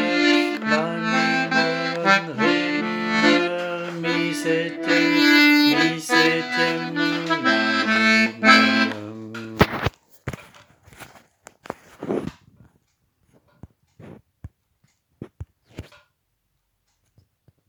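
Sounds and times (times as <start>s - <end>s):
rhythmic chords: 0.0s - 9.2s.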